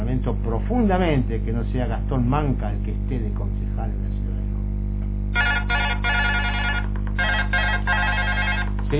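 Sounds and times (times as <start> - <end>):
speech: 0.1 - 4.6
telephone ringing in a studio with an electronic warbling tone: 5.4 - 8.9.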